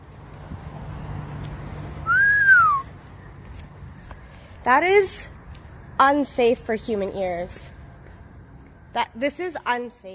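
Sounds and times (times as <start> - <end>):
mosquito anti-loitering alarm high-pitched tone: 0.0 - 10.1
speech: 4.7 - 5.3, 6.0 - 7.7, 9.0 - 10.1.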